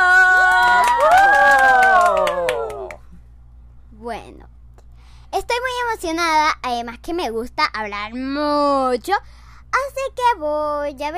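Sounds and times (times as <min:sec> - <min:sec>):
applause: 0:00.0 - 0:03.0
speech: 0:06.0 - 0:11.1.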